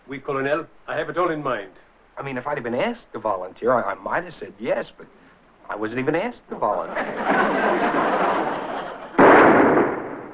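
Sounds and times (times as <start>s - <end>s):
steady hiss: 0.0s - 10.3s
speech: 0.1s - 8.5s
laughter: 6.7s - 9.2s
gunshot fired at a bulletproof vest: 9.2s - 10.3s.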